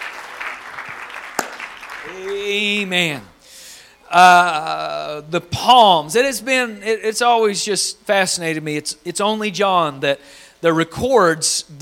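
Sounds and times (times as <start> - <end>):
audience clapping hands: 0.0 - 2.9
speech: 2.0 - 3.3, 4.1 - 11.8.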